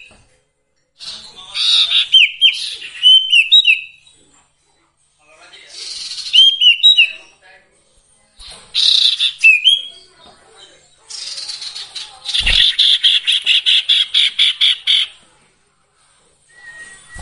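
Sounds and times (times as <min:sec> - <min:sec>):
song: 0:01.0 - 0:04.2, 0:05.8 - 0:07.3, 0:08.7 - 0:10.2, 0:11.1 - 0:15.2.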